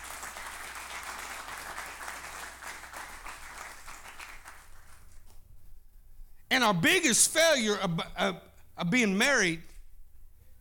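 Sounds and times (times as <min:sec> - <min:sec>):
audience applause: 0:00.0 - 0:05.2
speech: 0:06.6 - 0:09.7.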